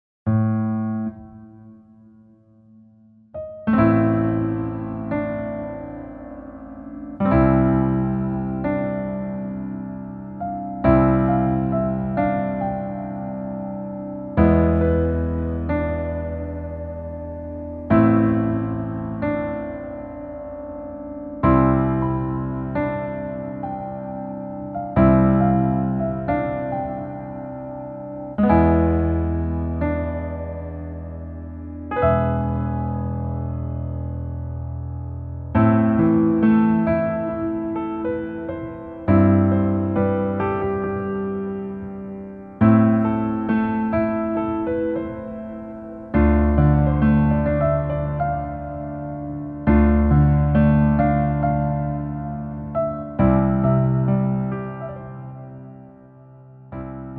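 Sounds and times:
piano melody backing track: 0.3 - 57.1.

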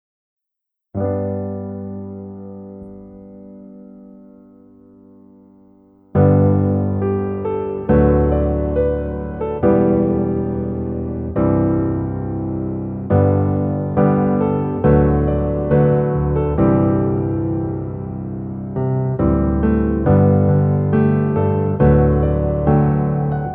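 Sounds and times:
piano melody backing track: 0.9 - 23.5.

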